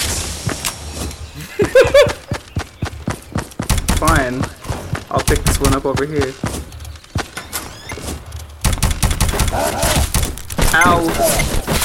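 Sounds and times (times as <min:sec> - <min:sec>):
laughter: 0:01.4 - 0:02.4
video game gunfire: 0:03.6 - 0:07.5, 0:08.6 - 0:11.8
speech: 0:05.3 - 0:06.6.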